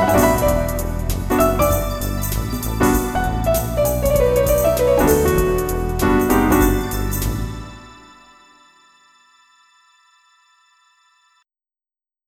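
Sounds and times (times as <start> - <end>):
swing music: 0.0 - 8.1.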